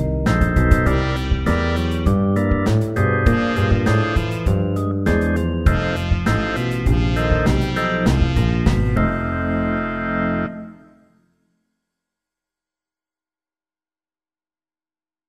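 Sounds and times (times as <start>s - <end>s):
slow twelve-bar blues music: 0.0s - 10.9s.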